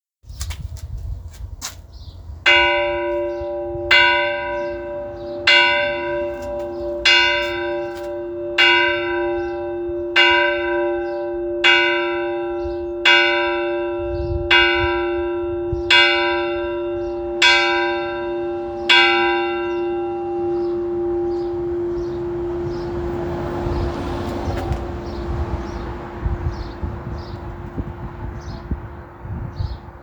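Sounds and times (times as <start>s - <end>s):
bell on Anzac Day: 2.5s - 25.8s.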